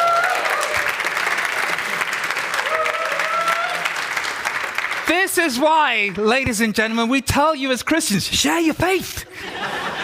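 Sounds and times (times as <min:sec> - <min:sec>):
audience applause: 0:00.0 - 0:06.1
speech: 0:05.3 - 0:09.8
laughter: 0:09.2 - 0:10.0.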